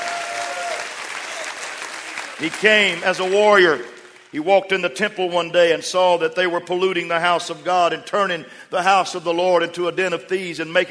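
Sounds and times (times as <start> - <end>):
audience clapping hands: 0.0 - 4.4
speech: 2.4 - 10.8.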